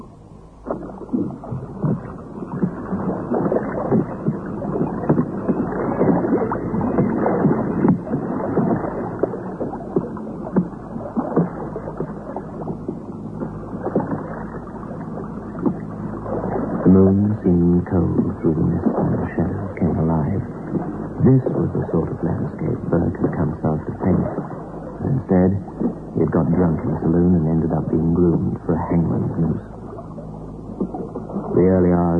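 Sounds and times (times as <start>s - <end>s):
boat moving through water: 0.0s - 32.1s
brief droning tone: 0.0s - 32.1s.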